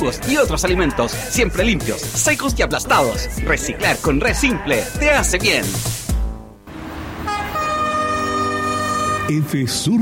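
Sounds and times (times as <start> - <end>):
speech: 0.0 - 6.0, 9.3 - 9.9
train rumbling past: 6.7 - 9.3
train horn blast: 6.8 - 9.5.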